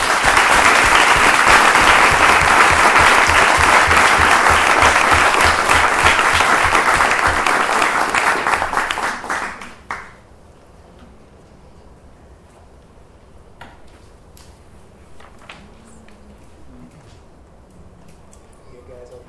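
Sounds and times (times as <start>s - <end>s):
large audience applause: 0.0s - 10.2s.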